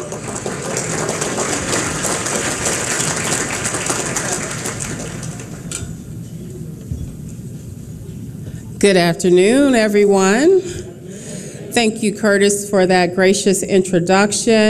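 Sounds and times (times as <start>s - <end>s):
audience applause: 0.0s - 5.7s
low murmur of room noise: 0.0s - 14.6s
speech: 8.8s - 10.8s, 11.8s - 14.6s.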